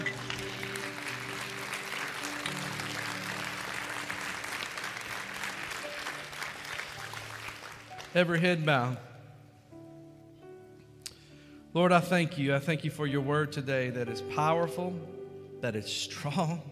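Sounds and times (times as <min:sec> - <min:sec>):
audience applause: 0:00.0 - 0:08.4
speech: 0:08.2 - 0:09.1, 0:11.8 - 0:16.7.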